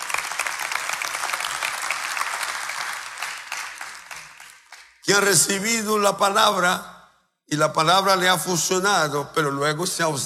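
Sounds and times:
audience applause: 0.0s - 5.0s
speech: 5.1s - 6.9s, 7.5s - 10.2s.

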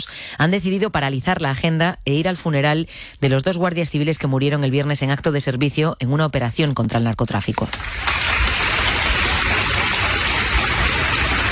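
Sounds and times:
speech: 0.4s - 8.3s
applause from a large crowd at a funeral: 7.7s - 11.5s.

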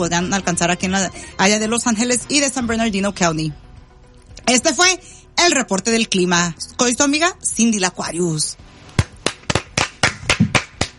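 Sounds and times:
speech: 0.0s - 3.6s, 4.5s - 8.6s
applause hand clapping: 9.0s - 10.9s.

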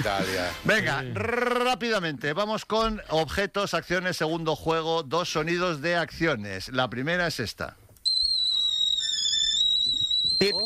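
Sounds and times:
speech: 0.0s - 7.8s, 10.4s - 10.6s
kettle whistling: 8.1s - 10.6s.

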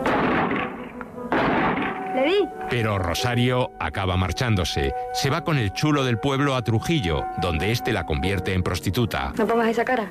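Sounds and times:
gunshot from a gun held firmly against the shoulder: 0.0s - 2.2s
speech: 2.3s - 10.0s.

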